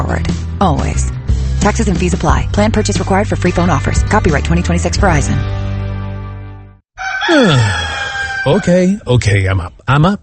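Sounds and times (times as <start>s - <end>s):
speech: 0.1s - 5.6s, 7.3s - 7.8s, 8.4s - 10.2s
rooster crowing: 7.0s - 8.9s.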